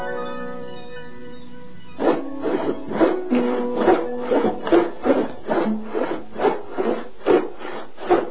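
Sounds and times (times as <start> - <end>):
saw or file working wood: 2.0 - 8.3.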